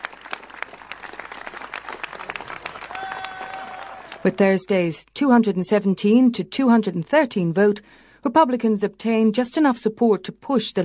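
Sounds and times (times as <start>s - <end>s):
crowd of supporters applauding: 0.0s - 4.4s
speech: 4.2s - 10.8s.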